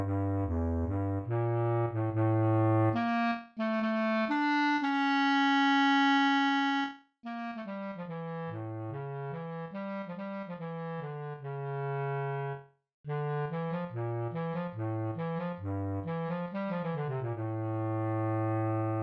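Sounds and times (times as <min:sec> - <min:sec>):
bass clarinet: 0:00.0 - 0:19.0.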